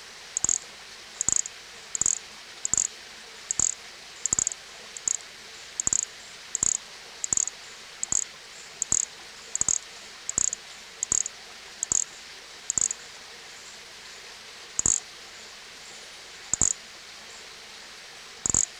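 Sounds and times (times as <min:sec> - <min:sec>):
hiss: 0:00.0 - 0:18.7
Nesobia mjobergi buzzy chirps: 0:00.3 - 0:02.9, 0:03.5 - 0:13.0, 0:14.8 - 0:15.0, 0:16.6 - 0:16.8, 0:18.5 - 0:18.7.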